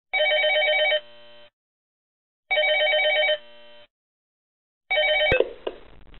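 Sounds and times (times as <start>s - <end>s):
phone ringing: 0.2s - 1.1s, 2.5s - 3.4s, 4.9s - 5.6s.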